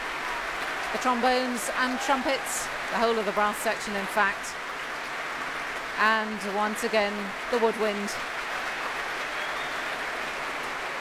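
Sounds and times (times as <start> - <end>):
orchestral concert audience cheering and applauding for the timpanist: 0.0 - 10.9
speech: 0.9 - 4.7, 6.0 - 8.3.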